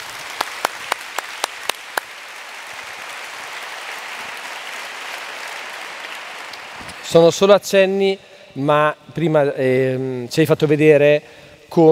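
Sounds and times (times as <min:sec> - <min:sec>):
audience applause: 0:00.0 - 0:07.5
speech: 0:07.1 - 0:11.9.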